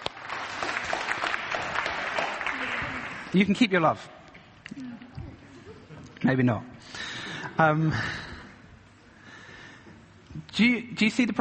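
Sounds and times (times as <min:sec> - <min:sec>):
audience clapping: 0:00.0 - 0:03.7
speech: 0:03.3 - 0:04.2, 0:06.2 - 0:08.2, 0:10.6 - 0:11.3.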